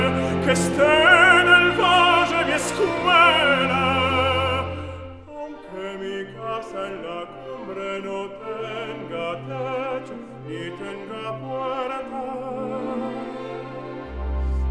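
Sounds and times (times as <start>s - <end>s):
piano: 0.0s - 5.0s
person singing: 0.0s - 14.6s.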